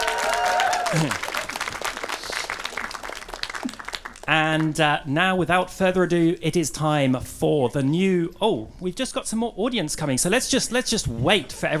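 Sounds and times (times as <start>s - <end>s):
whoop or cheer: 0.0s - 1.4s
crowd applauding: 0.0s - 4.8s
speech: 0.9s - 1.3s, 4.3s - 11.7s.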